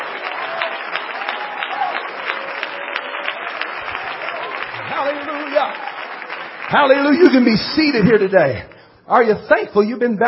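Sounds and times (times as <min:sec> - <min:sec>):
audience clapping hands: 0:00.0 - 0:08.8
speech: 0:06.7 - 0:10.2.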